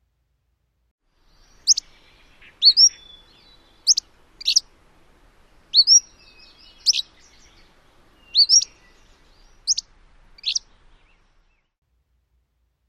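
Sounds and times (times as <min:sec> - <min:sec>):
Empidonax flycatcher song: 0:01.2 - 0:04.7, 0:05.6 - 0:11.8.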